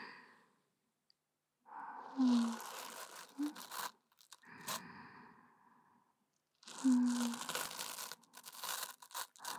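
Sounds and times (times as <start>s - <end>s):
soft brush brushing ears ASMR before sleep: 2.3s - 4.8s, 6.7s - 9.5s.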